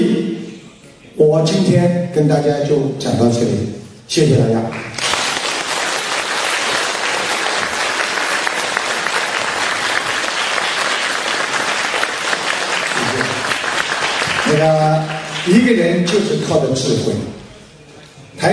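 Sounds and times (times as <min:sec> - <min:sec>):
speech: 0:01.2 - 0:05.0, 0:14.6 - 0:17.4
small audience applause after a talk: 0:04.8 - 0:16.1.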